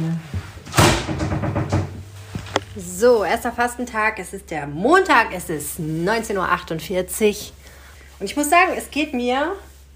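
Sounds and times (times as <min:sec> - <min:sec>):
refrigerator steady low hum: 0:00.0 - 0:09.9
refrigerator door opening: 0:00.6 - 0:02.2
speech: 0:02.8 - 0:09.7.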